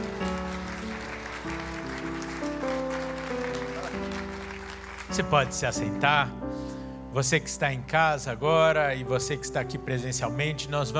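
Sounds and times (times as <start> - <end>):
audience applause: 0.0 - 5.8
speech: 5.1 - 6.4, 7.1 - 10.9.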